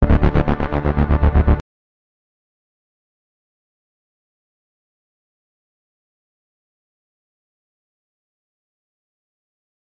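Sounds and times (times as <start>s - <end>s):
tense pulses: 0.0s - 1.6s.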